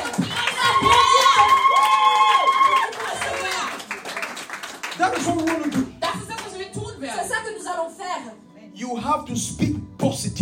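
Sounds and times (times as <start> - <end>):
audience cheering praise: 0.0 - 5.6
audience clapping: 0.0 - 6.7
speech: 9.2 - 9.7.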